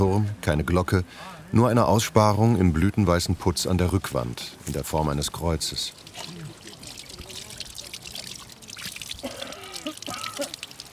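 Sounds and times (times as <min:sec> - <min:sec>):
speech: 0:00.0 - 0:06.4
people washing at a fountain pouring water: 0:05.1 - 0:10.9.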